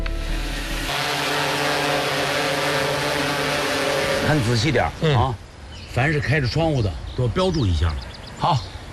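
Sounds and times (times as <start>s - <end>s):
drone flying, rotors whirring: 0.0s - 5.0s
speech: 4.3s - 5.4s, 6.0s - 8.7s.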